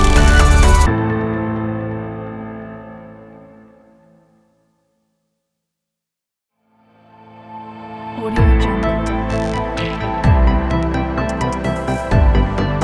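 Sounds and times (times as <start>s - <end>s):
inspiring technology corporate background music: 0.0s - 1.0s, 8.2s - 12.8s.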